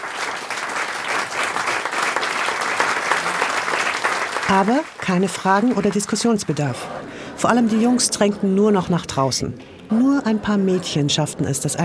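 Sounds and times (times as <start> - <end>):
enthusiastic audience applause: 0.0 - 6.8
speech: 4.5 - 11.8.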